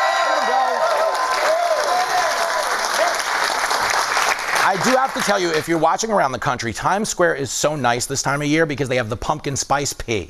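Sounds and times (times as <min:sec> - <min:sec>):
studio audience whoops and shouts: 0:00.0 - 0:03.2
studio audience clapping in New York City: 0:00.0 - 0:05.9
speech: 0:04.7 - 0:10.2.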